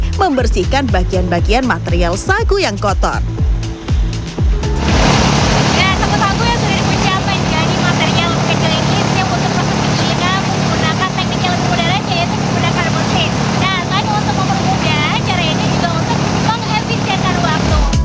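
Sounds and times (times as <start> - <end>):
speech: 0.2 - 3.6
engine-driven machine grinding sago trunk pieces: 4.7 - 17.9.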